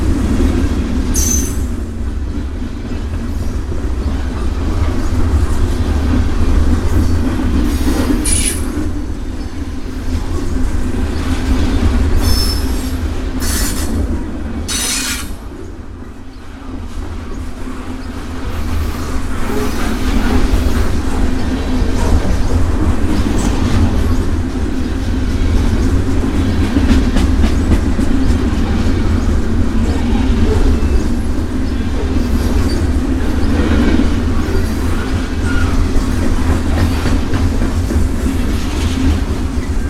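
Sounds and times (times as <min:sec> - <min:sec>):
freight train in Burnaby BC Canada: 0:00.0 - 0:39.8
railway crossing in Burnaby BC Canada: 0:01.1 - 0:01.8, 0:08.0 - 0:09.0.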